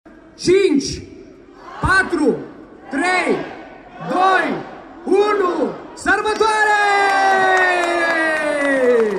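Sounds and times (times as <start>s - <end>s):
speech: 0.4s - 1.2s, 1.8s - 7.0s
crowd cheering and clapping at Christmas lights switch-on on Opera Square in Timișoara: 6.3s - 9.1s.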